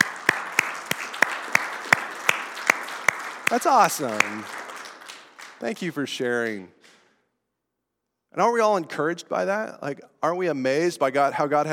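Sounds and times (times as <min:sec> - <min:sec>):
audience applause: 0:00.0 - 0:06.6
speech: 0:03.5 - 0:04.6, 0:05.6 - 0:06.8, 0:08.3 - 0:11.7.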